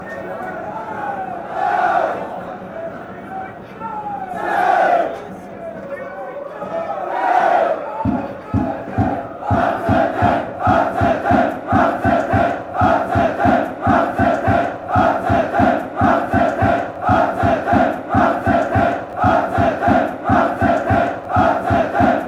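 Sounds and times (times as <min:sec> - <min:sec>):
crowd chanting: 0:00.0 - 0:05.7, 0:06.5 - 0:22.2.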